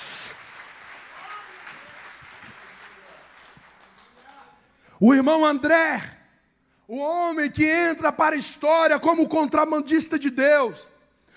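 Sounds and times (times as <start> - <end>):
audience applause: 0.0 - 4.5
speech: 5.0 - 6.2, 6.9 - 11.3.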